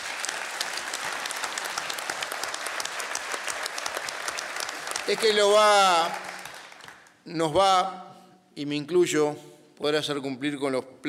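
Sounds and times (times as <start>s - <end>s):
audience applause: 0.0s - 7.1s
speech: 5.1s - 6.3s, 7.2s - 11.0s.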